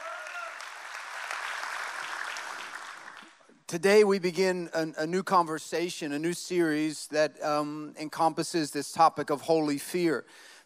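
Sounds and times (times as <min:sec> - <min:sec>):
audience clapping: 0:00.0 - 0:03.5
speech: 0:03.7 - 0:10.5.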